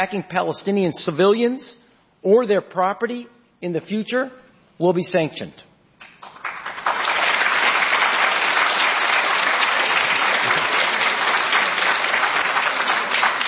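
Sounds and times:
speech: 0.0 - 5.7
audience applause: 6.0 - 13.4.

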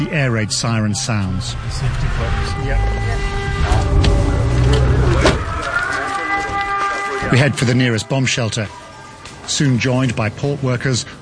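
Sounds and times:
speech: 0.0 - 4.2, 7.3 - 8.8, 9.5 - 11.2
attack drone flying: 1.1 - 6.8.

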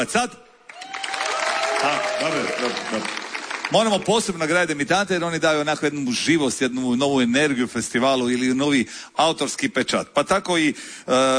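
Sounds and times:
speech: 0.0 - 0.5, 1.8 - 11.3
audience applause for a debut songwriter at a music festival: 0.7 - 4.3.

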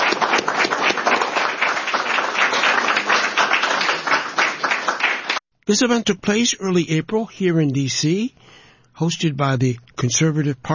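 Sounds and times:
audience round of applause: 0.0 - 5.4
speech: 5.7 - 10.7.

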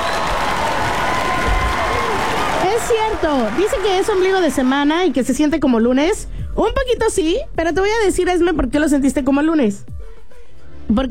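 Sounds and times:
crowd clapping on a radio morning show: 0.0 - 5.4
speech: 2.9 - 10.0, 10.9 - 11.0.

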